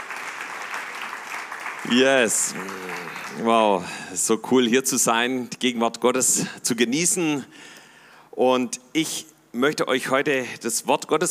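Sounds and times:
crowd applauding: 0.0s - 4.1s
speech: 1.8s - 7.8s, 8.4s - 11.3s.

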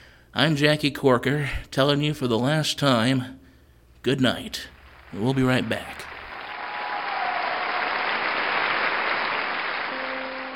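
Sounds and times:
speech: 0.4s - 3.4s, 4.0s - 6.1s
applause: 4.7s - 10.5s.

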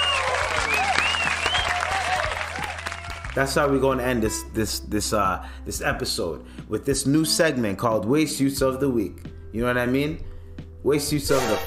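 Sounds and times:
whoops and shouts: 0.0s - 3.3s
crowd applause: 0.0s - 3.4s
speech: 3.4s - 11.6s.

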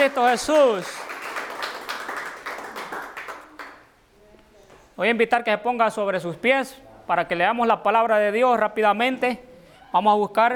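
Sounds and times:
speech: 0.0s - 1.1s, 5.0s - 10.5s
audience applause: 0.0s - 3.9s.

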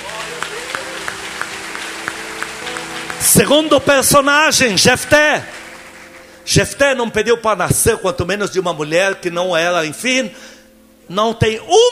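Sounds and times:
audience applauding: 0.0s - 6.8s
speech: 3.2s - 5.6s, 6.5s - 11.9s.

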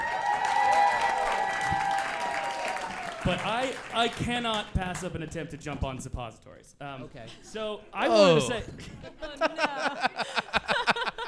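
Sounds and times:
crowd applause: 0.0s - 4.7s
speech: 3.2s - 10.2s
laughter: 8.0s - 11.2s.

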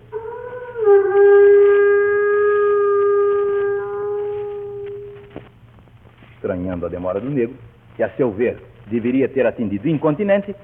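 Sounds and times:
horn instrument blown to summon: 0.1s - 5.4s
speech: 6.7s - 10.6s.

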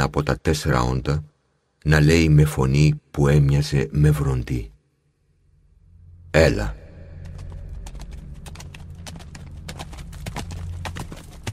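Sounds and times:
speech: 0.1s - 4.7s, 6.3s - 6.8s
low rumbling background: 3.0s - 11.5s
horse hooves clip-clopping on a hard surface: 7.2s - 11.5s.

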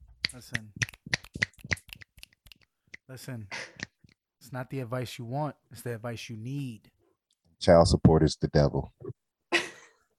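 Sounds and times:
fingers snapping in a steady beat: 0.2s - 3.1s
speech: 0.3s - 0.9s, 3.1s - 3.8s, 4.5s - 6.9s, 7.6s - 9.0s.

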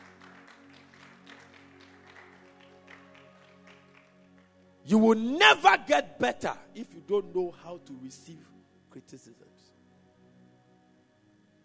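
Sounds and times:
audience clapping: 0.0s - 4.8s
speech: 4.9s - 9.6s.

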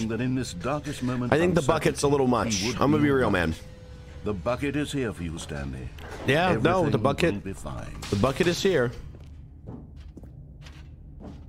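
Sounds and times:
speech: 0.0s - 9.1s
footsteps through a large door in The Stanley Parable Ultra Deluxe: 8.8s - 11.4s.

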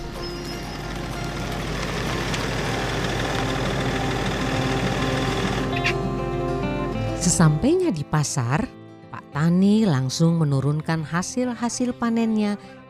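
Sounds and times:
truck engine idling: 0.0s - 6.7s
speech: 7.2s - 8.8s, 9.4s - 12.8s.

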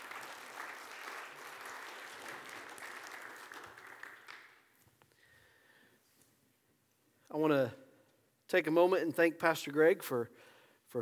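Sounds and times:
audience applauding: 0.0s - 4.8s
speech: 7.3s - 7.8s, 8.5s - 10.9s.

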